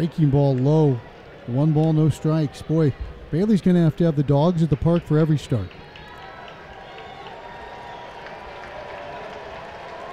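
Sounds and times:
large stadium crowd cheering and applauding: 0.0s - 3.0s, 3.6s - 10.1s
speech: 0.0s - 5.8s
scattered whistles: 7.6s - 8.4s.

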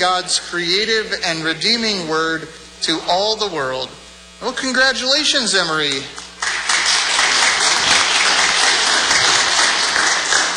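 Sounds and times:
speech: 0.0s - 6.2s
crowd applauding: 6.4s - 10.5s.

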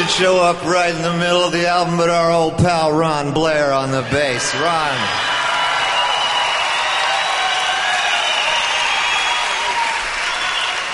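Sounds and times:
speech: 0.1s - 5.3s
audience applause: 4.6s - 10.9s.

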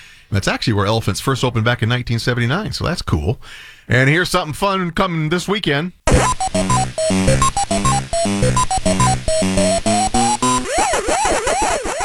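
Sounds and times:
speech: 0.3s - 9.9s
Classic Pac-Man arcade game sound: 6.1s - 12.0s.

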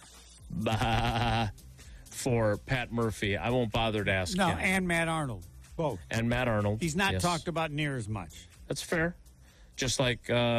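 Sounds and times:
sheep named Homer bleating: 0.6s - 1.5s
speech: 0.6s - 1.6s, 2.2s - 10.5s.

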